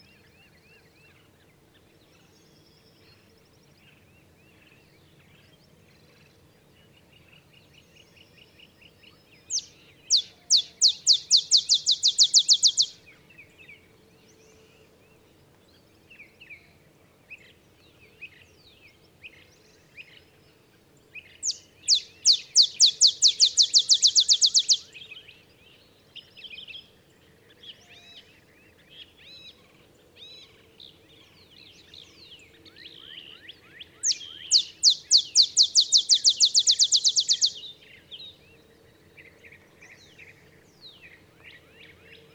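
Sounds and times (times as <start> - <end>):
olive sparrow song: 9.4 - 13.1, 21.4 - 25.2, 34.0 - 38.2
birds twittering: 9.5 - 13.0, 21.4 - 24.8, 34.0 - 38.3.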